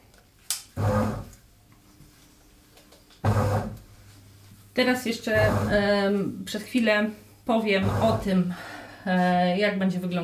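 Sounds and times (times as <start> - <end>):
bread machine motor churning while mixing dough: 0.8 - 1.4, 3.2 - 3.8, 5.3 - 5.9, 7.8 - 8.4
speech: 4.8 - 10.2.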